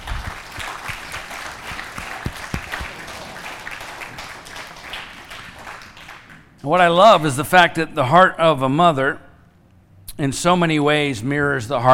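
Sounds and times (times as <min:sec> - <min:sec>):
crowd applauding: 0:00.0 - 0:06.5
speech: 0:06.6 - 0:09.2, 0:10.2 - 0:11.9.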